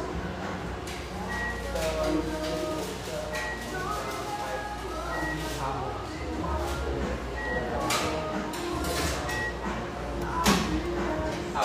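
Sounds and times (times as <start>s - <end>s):
murmur of voices in a busy Portland cafe: 0.0s - 11.6s
brief high beeps: 7.3s - 7.8s, 9.3s - 9.6s.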